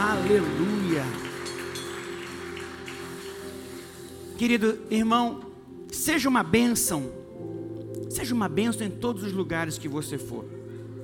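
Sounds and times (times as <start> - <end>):
audience applauding loudly: 0.0 - 4.2
speech: 0.2 - 1.2, 4.4 - 7.2, 8.1 - 10.6.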